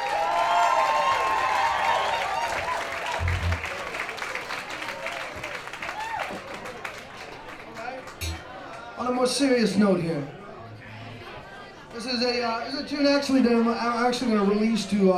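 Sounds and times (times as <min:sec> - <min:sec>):
audience applause for the band: 0:00.0 - 0:08.9
speech: 0:09.3 - 0:10.4, 0:12.0 - 0:15.1.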